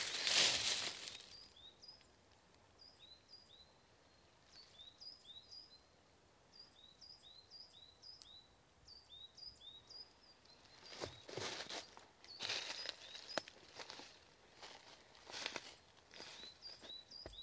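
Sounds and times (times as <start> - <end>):
footsteps in the snow in woods near Hebborn in Germany: 0.0 - 1.3, 10.6 - 17.4.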